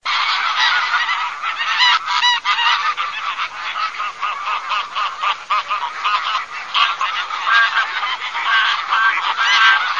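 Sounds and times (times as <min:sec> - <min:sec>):
bird sound: 0:00.0 - 0:09.9.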